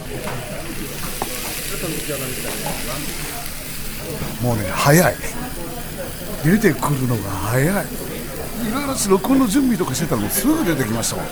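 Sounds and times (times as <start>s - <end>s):
beef kalbi sizzling on a hot iron griddle plate: 0.0s - 11.2s
laughter: 0.0s - 11.2s
speech: 1.7s - 3.4s, 4.0s - 11.2s.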